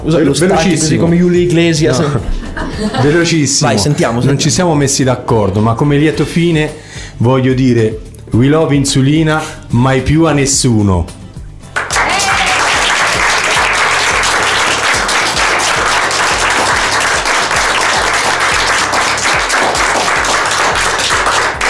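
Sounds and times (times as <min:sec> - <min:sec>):
speech: 0:00.0 - 0:11.2
laughter: 0:00.3 - 0:04.6
audience applause: 0:11.8 - 0:21.6.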